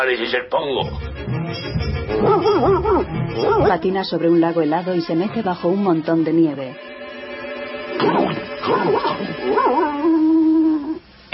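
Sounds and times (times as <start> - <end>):
speech: 0.0 - 1.4, 2.1 - 7.0, 8.0 - 10.0
dog barking, yipping and whining in a snowy setting: 2.1 - 3.8, 8.0 - 11.0.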